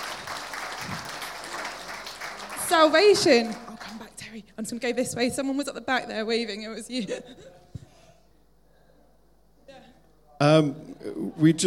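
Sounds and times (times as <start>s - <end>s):
audience applause: 0.0s - 4.3s
speech: 2.7s - 3.6s, 4.4s - 7.6s, 10.4s - 11.6s.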